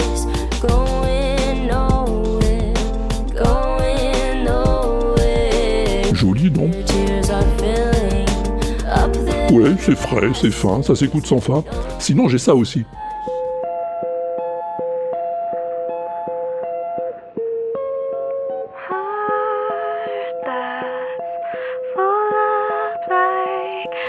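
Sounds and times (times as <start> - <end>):
singing voice through an old telephone handset: 0.0 - 13.3, 18.8 - 24.0
clean guitar picking a gentle melody: 4.5 - 20.1
speech: 9.5 - 13.1.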